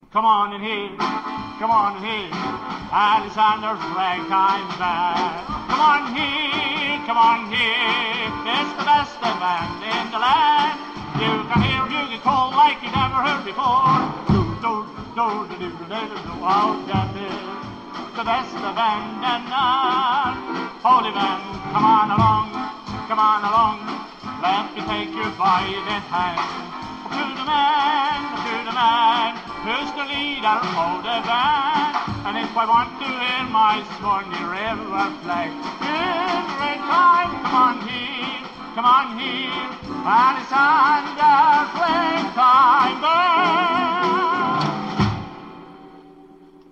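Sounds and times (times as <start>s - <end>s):
ragtime music: 0.0s - 46.7s.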